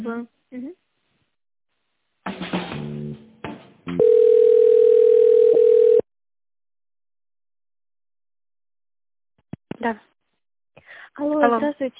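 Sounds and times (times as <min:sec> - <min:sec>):
speech: 0:00.0 - 0:00.7
telephone tone while call is being transferred: 0:04.0 - 0:06.1.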